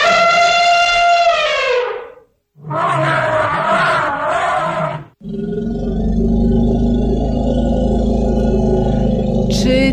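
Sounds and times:
elephant trumpeting: 0.0 - 5.2
elephant roaring bellow: 2.6 - 9.9
elephant deep rumbling growl: 5.2 - 9.9.

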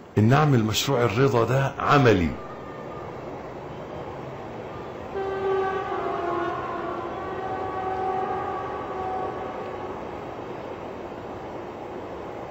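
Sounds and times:
train rumbling past: 0.0 - 12.4
speech: 0.2 - 2.5
train horn: 5.0 - 10.9.

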